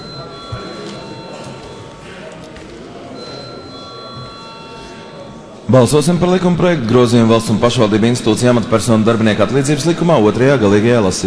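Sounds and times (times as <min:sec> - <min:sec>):
parliament electric bell rung before vote: 0:00.0 - 0:02.3, 0:03.1 - 0:05.7
murmur of chatter: 0:00.0 - 0:11.2
speech: 0:05.7 - 0:11.2.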